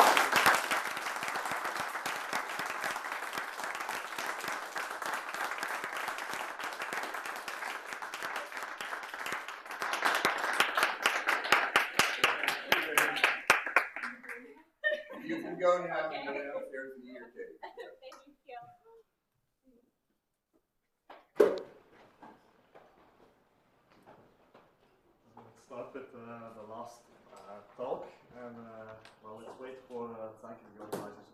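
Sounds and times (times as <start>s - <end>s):
audience applause: 0.0s - 14.5s
laughter: 14.4s - 18.2s.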